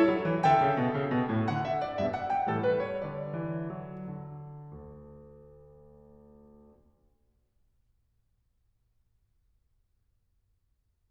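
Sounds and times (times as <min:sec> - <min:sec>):
classical minuet: 0:00.0 - 0:06.8.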